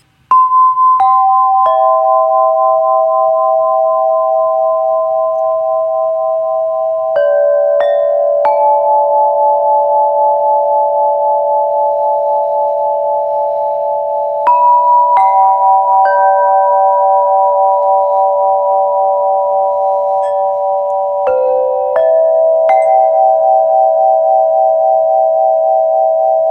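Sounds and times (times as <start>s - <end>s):
harp notes plucked: 0.0s - 26.4s.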